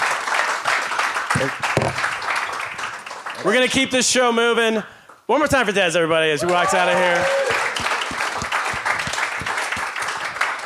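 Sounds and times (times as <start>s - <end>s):
round of applause: 0.0s - 3.9s, 6.4s - 10.6s
speech: 1.4s - 2.1s, 3.4s - 7.5s.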